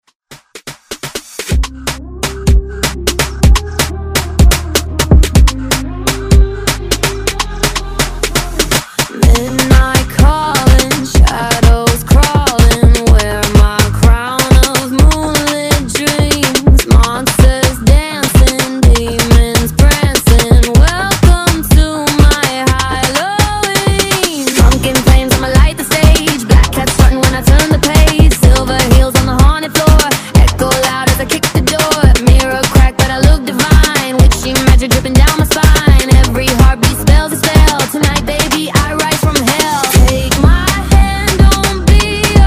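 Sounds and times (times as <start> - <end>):
afrobeat music: 0.2 - 42.4.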